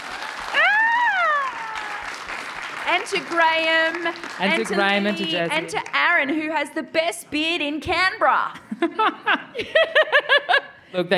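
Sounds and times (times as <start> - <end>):
audience applause at the close of a panel conversation: 0.0 - 6.3
speech: 2.9 - 11.1.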